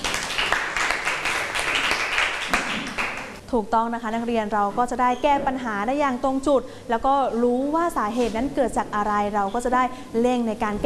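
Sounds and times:
group of students clapping: 0.0s - 3.4s
speech: 3.5s - 10.8s.

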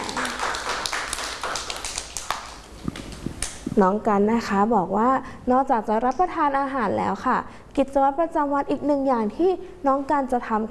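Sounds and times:
children clapping: 0.0s - 3.6s
speech: 3.8s - 10.6s.

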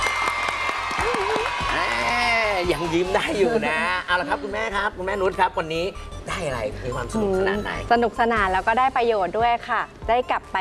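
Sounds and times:
crowd applauding: 0.0s - 3.1s
speech: 2.7s - 10.5s.

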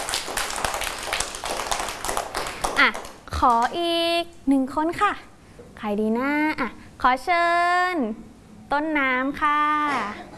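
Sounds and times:
children clapping: 0.0s - 3.8s
speech: 2.8s - 10.3s.

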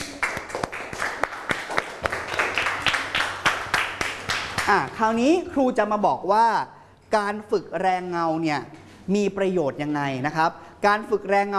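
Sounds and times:
hands clapping: 0.0s - 5.0s
speech: 4.7s - 11.5s.

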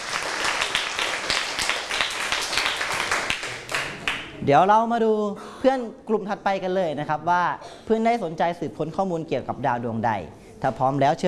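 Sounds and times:
classmates clapping: 0.0s - 4.4s
speech: 4.4s - 11.2s.

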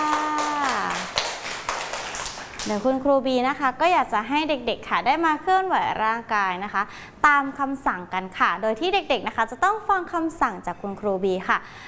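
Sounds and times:
children clapping hands: 0.0s - 2.8s
speech: 2.6s - 11.8s.

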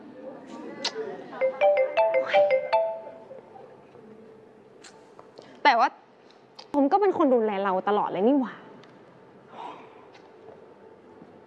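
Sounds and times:
phone ringtone: 1.4s - 3.3s
speech: 7.1s - 8.6s.

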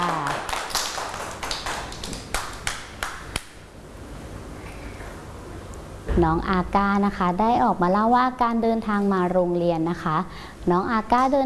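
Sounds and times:
children clapping: 0.0s - 3.6s
speech: 6.2s - 11.4s.

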